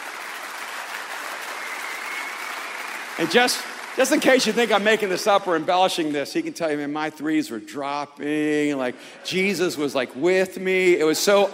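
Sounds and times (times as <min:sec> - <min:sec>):
audience applauding: 0:00.0 - 0:06.1
speech: 0:03.2 - 0:11.5.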